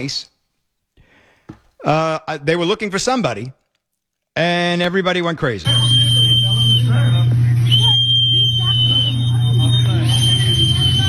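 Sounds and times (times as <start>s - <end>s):
speech: 0.0s - 0.3s, 1.8s - 3.6s, 4.4s - 5.8s
protester's whistle petering out: 5.7s - 11.0s.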